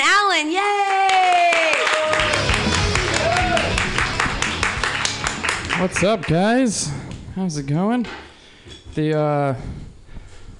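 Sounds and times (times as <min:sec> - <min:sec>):
comedy club audience clapping wildly: 0:00.6 - 0:06.8
speech: 0:05.8 - 0:08.2, 0:09.0 - 0:09.8.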